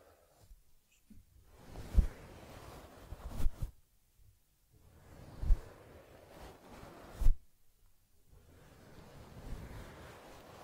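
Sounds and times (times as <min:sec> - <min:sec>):
soft rustling and brushing of ear cleaning on a teddy bear: 0:00.0 - 0:03.8, 0:04.8 - 0:07.6, 0:08.3 - 0:10.6.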